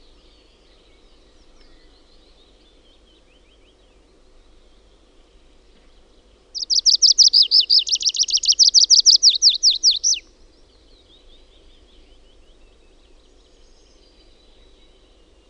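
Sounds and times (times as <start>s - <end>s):
tree pipit singing: 6.6s - 10.2s.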